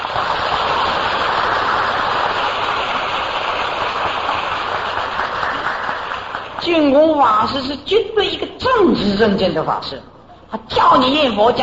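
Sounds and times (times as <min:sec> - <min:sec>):
audience applause: 0:00.0 - 0:06.6
speech: 0:07.2 - 0:11.6.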